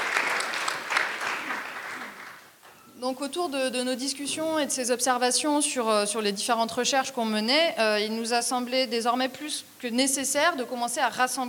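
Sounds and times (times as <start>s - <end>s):
audience applause: 0.0s - 2.5s
speech: 3.0s - 11.4s.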